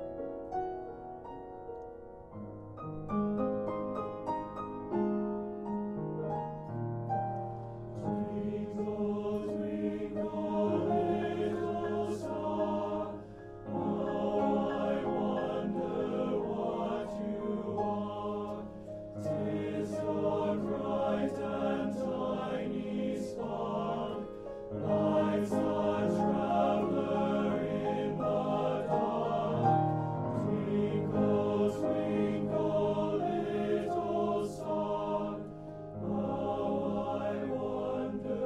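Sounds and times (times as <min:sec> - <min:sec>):
piano: 0:00.0 - 0:38.4
TTBB male choir singing a nursery rhyme: 0:08.0 - 0:38.4.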